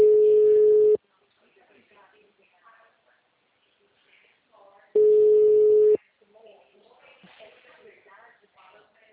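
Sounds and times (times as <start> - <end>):
telephone line tones after a dropped call: 0.0 - 1.0, 5.0 - 6.0.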